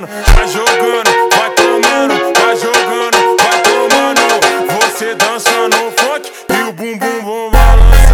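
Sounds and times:
slowed funk music: 0.3 - 6.2, 7.5 - 8.1.

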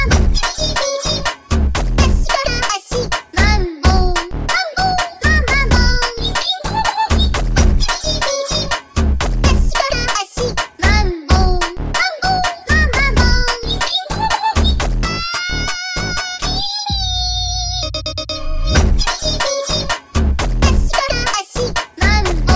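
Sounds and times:
sped up funk music: 0.1 - 16.7, 17.9 - 22.4.

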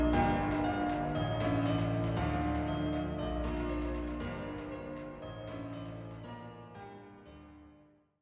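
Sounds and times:
super slowed funk music: 0.2 - 6.3.

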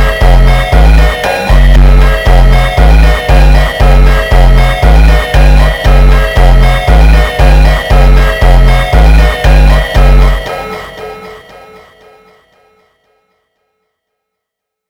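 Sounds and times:
slowed funk music: 0.0 - 10.9.

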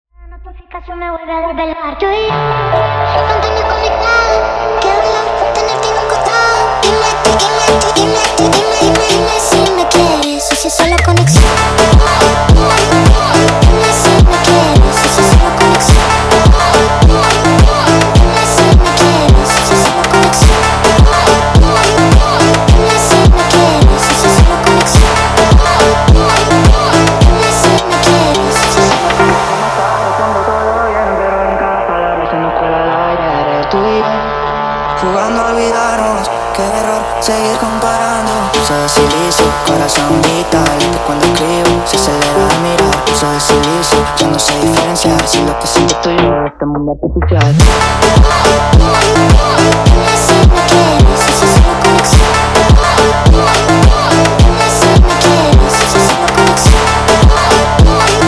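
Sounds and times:
sped-up phonk music: 1.0 - 58.2.

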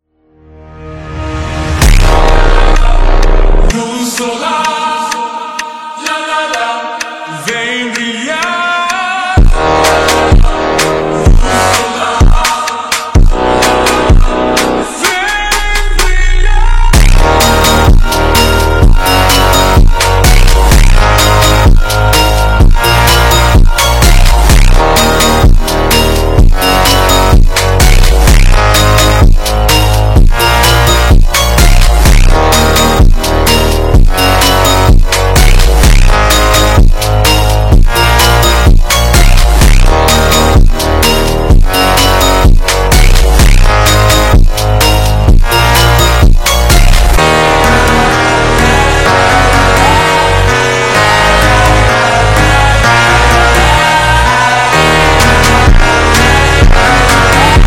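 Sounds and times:
super slowed funk music: 1.1 - 5.2, 6.0 - 57.6.

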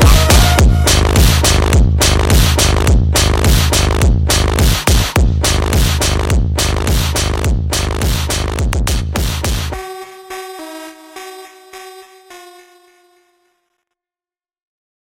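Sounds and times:
slowed kick drum: 0.0 - 9.8.

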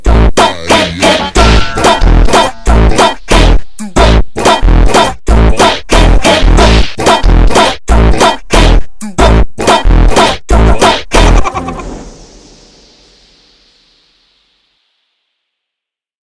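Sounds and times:
slowed funk music: 0.0 - 11.8.

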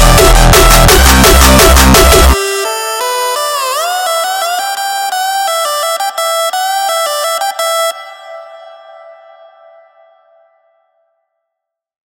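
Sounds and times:
hardstyle music: 0.0 - 9.3.

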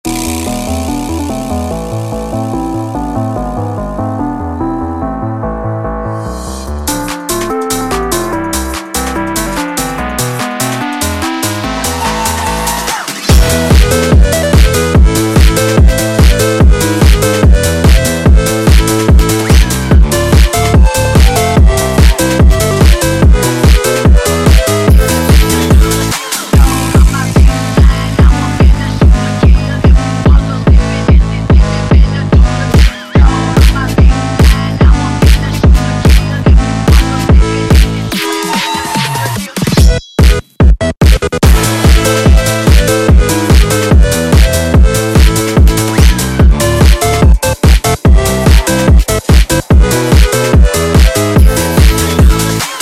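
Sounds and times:
phonk music: 0.0 - 52.7.

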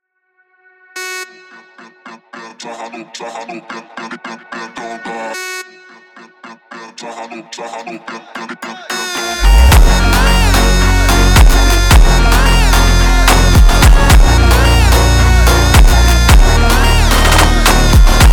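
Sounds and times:
slowed funk music: 9.4 - 18.3.

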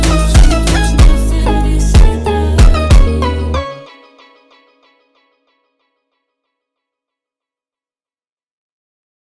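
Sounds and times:
slowed funk music: 0.0 - 5.4.

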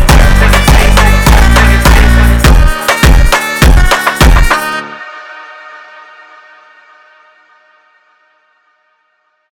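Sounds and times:
slowed hardstyle funk music: 0.0 - 5.4.

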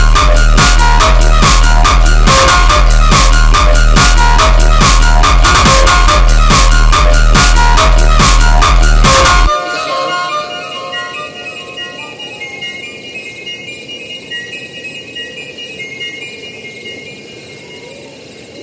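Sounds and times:
sped up funk music: 0.0 - 12.8.

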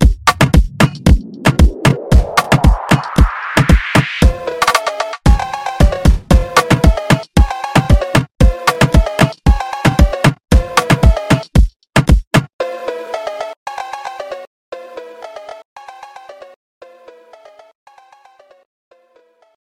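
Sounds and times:
super slowed funk music: 0.0 - 11.5.

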